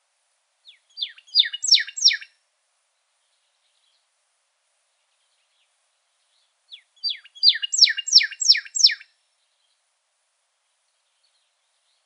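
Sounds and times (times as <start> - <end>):
pyrrhuloxia rising whistled call notes in Arizona: 1.0 - 2.3, 6.7 - 9.0.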